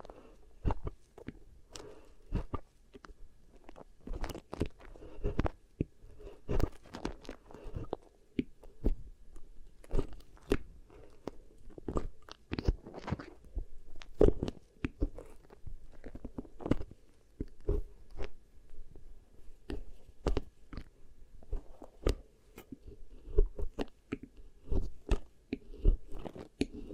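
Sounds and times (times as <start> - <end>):
beeswax pressed and worked against the ear: 0.0 - 26.9.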